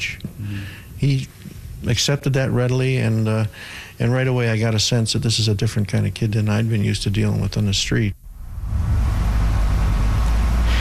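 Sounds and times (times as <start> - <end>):
speech: 0.0 - 1.3, 1.9 - 8.2
vehicle engine towing a wrecked 1985 burgundy Firebird onto a school lawn: 8.2 - 10.7.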